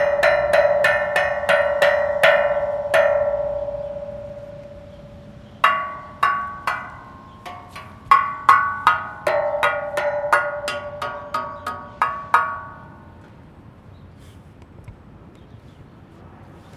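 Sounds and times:
metal pot: 0:00.0 - 0:13.0.

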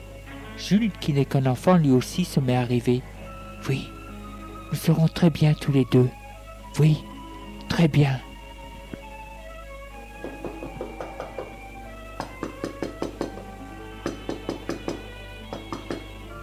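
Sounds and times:
soft music: 0:00.0 - 0:16.4
speech: 0:00.6 - 0:04.0, 0:04.7 - 0:06.2, 0:06.8 - 0:07.1, 0:07.7 - 0:08.3
knocking on a door: 0:10.2 - 0:11.6, 0:12.2 - 0:16.1.

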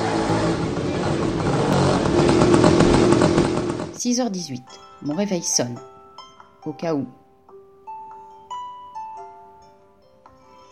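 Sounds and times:
newspaper delivery motorbike passing: 0:00.0 - 0:04.0
speech: 0:04.1 - 0:05.9, 0:06.6 - 0:07.2.

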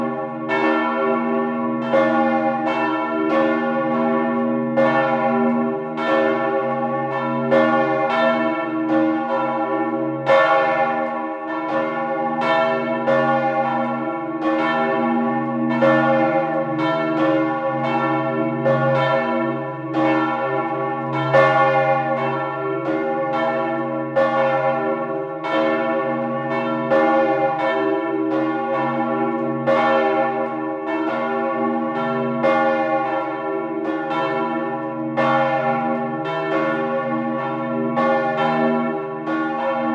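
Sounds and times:
church bells ringing: 0:00.0 - 0:39.9.

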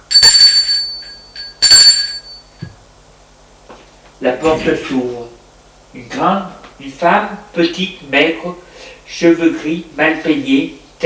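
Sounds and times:
doorbell ringing: 0:00.1 - 0:02.6
speech: 0:04.2 - 0:05.3, 0:06.0 - 0:11.0.

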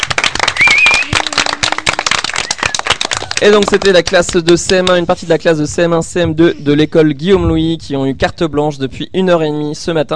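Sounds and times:
class of children applauding: 0:00.0 - 0:04.8
brief high-pitched cheer: 0:00.4 - 0:03.4
speech: 0:03.4 - 0:10.1.

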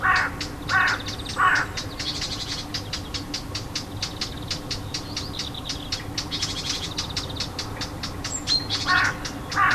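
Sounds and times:
warbler alarm call: 0:00.0 - 0:09.7.

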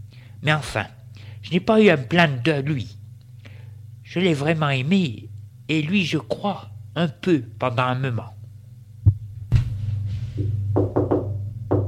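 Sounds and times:
speech: 0:00.4 - 0:03.0, 0:04.1 - 0:08.4
knocking on a door: 0:10.4 - 0:11.8.

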